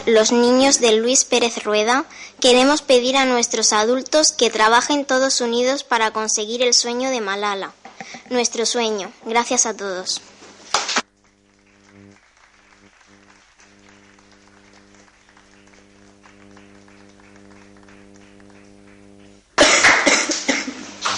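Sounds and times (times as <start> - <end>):
speech: 0.0 - 10.3
audience applause: 10.8 - 21.1
steady low hum: 11.0 - 19.6.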